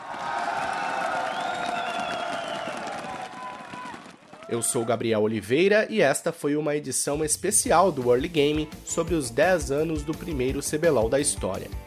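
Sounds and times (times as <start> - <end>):
audience applause: 0.0 - 5.0
crowd cheering: 0.0 - 5.0
speech: 4.5 - 11.8.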